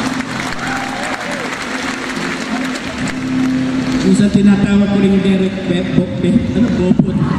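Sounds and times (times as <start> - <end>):
audience applause at the Rizal Grand Feast 2016 gathering: 0.0 - 4.2
speech: 4.1 - 7.2.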